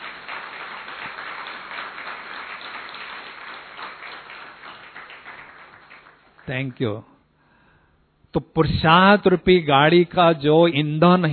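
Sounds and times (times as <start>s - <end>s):
audience applause: 0.0s - 6.6s
speech: 6.5s - 7.1s, 8.4s - 11.3s.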